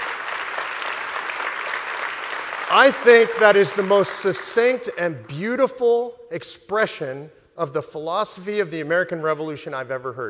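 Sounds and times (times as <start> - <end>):
audience applause: 0.0 - 4.9
speech: 2.7 - 10.2.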